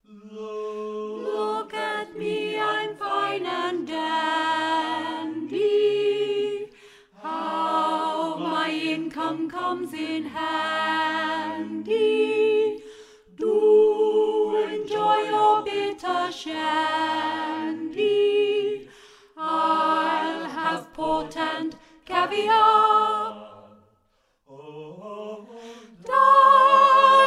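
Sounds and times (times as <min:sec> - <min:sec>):
soprano choir singing: 0:00.0 - 0:27.2.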